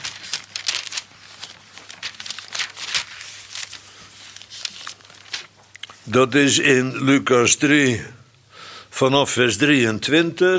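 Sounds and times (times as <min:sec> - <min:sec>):
pages of a Bible being leafed through: 0:00.0 - 0:06.0
speech: 0:06.1 - 0:08.2, 0:09.0 - 0:10.5.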